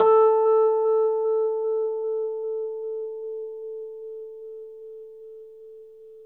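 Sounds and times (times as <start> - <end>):
Rhodes electric piano note A3: 0.0 - 4.8.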